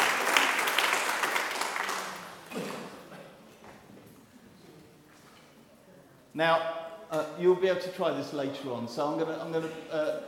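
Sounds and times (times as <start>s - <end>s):
round of applause: 0.0s - 2.9s
speech: 6.4s - 10.2s.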